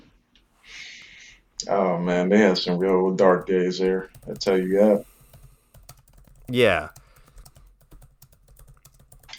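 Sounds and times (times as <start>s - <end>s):
speech: 1.6s - 5.1s, 6.5s - 7.0s
typing on a computer keyboard: 3.3s - 4.6s, 5.3s - 9.3s.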